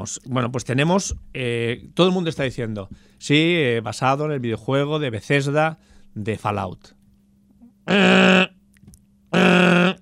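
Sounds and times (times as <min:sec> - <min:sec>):
speech: 0:00.0 - 0:07.0, 0:07.9 - 0:08.4
low steady hum: 0:00.0 - 0:10.0
hoarse buzzy voice imitating a nuclear shelter alarm: 0:07.9 - 0:08.6, 0:09.4 - 0:10.0.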